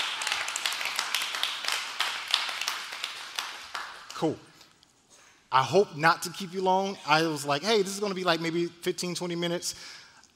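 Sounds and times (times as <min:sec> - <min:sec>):
round of applause: 0:00.0 - 0:04.2
speech: 0:04.2 - 0:04.5, 0:05.5 - 0:10.3.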